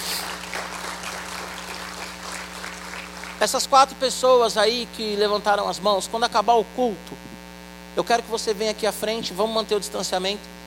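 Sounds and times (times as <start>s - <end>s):
audience applause: 0.0s - 3.7s
speech: 3.4s - 7.4s, 8.0s - 10.6s.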